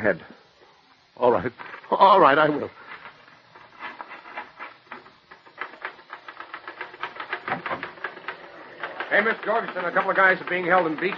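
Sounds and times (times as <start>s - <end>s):
speech: 0.0s - 0.4s, 1.2s - 2.8s, 9.1s - 11.1s
typing on a typewriter: 4.9s - 11.1s.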